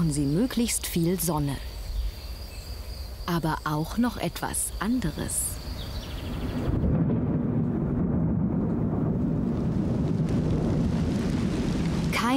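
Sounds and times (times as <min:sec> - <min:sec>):
speech: 0:00.0 - 0:01.8, 0:03.3 - 0:05.5
rain pouring: 0:05.6 - 0:12.3.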